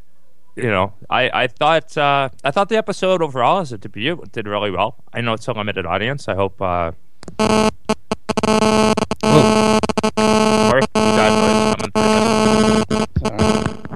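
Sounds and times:
speech: 0:00.6 - 0:07.8
cell phone ringing: 0:07.4 - 0:13.8.

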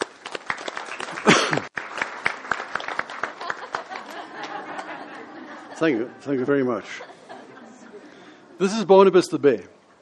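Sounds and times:
audience round of applause: 0:00.0 - 0:05.8
laughter: 0:03.2 - 0:08.7
speech: 0:05.8 - 0:07.1, 0:08.6 - 0:09.8.

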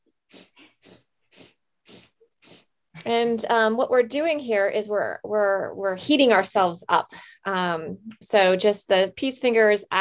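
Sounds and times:
breath of fire yoga breathing with rapid forceful exhalations: 0:00.3 - 0:02.7
speech: 0:03.0 - 0:09.9.

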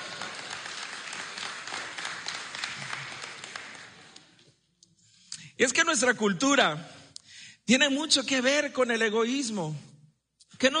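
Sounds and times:
audience applause: 0:00.0 - 0:04.3
speech: 0:05.6 - 0:07.0, 0:07.7 - 0:09.9, 0:10.6 - 0:10.7.

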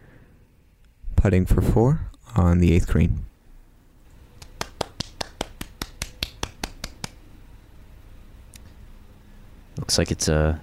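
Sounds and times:
speech: 0:01.2 - 0:03.3, 0:09.9 - 0:10.6
quiet golf clap: 0:04.4 - 0:07.2.

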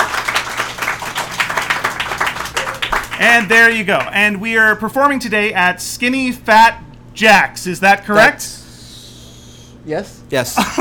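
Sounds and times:
audience clapping: 0:00.0 - 0:04.5
speech: 0:03.2 - 0:08.6, 0:09.8 - 0:10.8.

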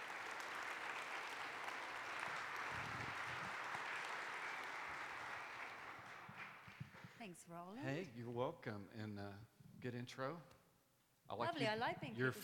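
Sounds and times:
audience applause welcoming a speaker to the stage: 0:00.0 - 0:07.0
speech: 0:07.2 - 0:10.6, 0:11.3 - 0:12.4.

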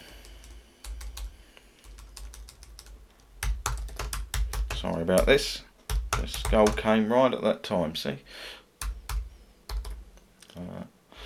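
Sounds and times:
someone typing a message on a computer keyboard: 0:00.2 - 0:07.0, 0:08.8 - 0:10.0
speech: 0:04.8 - 0:05.7, 0:06.3 - 0:08.6.

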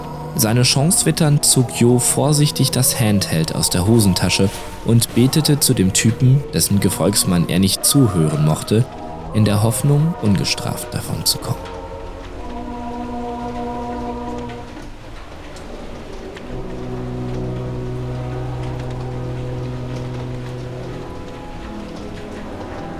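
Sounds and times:
thick spring rain drops hammering on leaded glass windows: 0:00.0 - 0:22.9
speech: 0:00.4 - 0:11.8.

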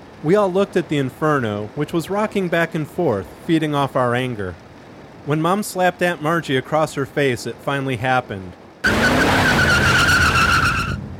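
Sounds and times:
speech: 0:00.2 - 0:04.6, 0:05.2 - 0:09.1
car tires squealing: 0:08.8 - 0:11.1.

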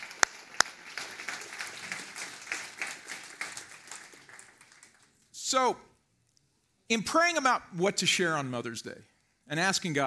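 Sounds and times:
audience applause: 0:00.0 - 0:05.2
speech: 0:05.5 - 0:05.9, 0:06.9 - 0:10.0.

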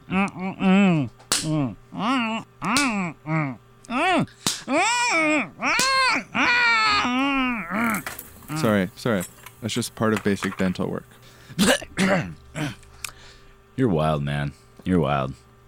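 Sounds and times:
person yelping in pain: 0:00.0 - 0:08.7
slaps to the face: 0:01.2 - 0:01.6, 0:02.6 - 0:03.0, 0:04.4 - 0:04.7, 0:05.7 - 0:06.0
speech: 0:09.0 - 0:12.4, 0:13.8 - 0:15.4.

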